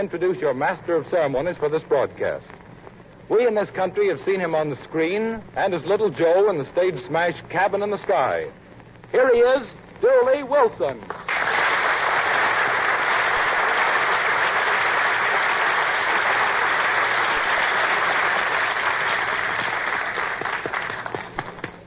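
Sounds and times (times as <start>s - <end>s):
speech: 0.0s - 2.6s, 3.3s - 11.4s
audience applause: 11.3s - 21.8s.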